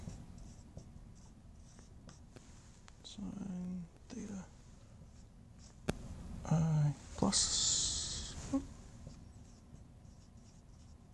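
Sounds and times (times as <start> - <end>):
handwriting while working out a mechanics equation: 0.0 - 2.3, 9.0 - 11.1
steady hiss: 2.1 - 9.2
speech: 3.1 - 4.6, 6.4 - 7.8, 8.5 - 8.7.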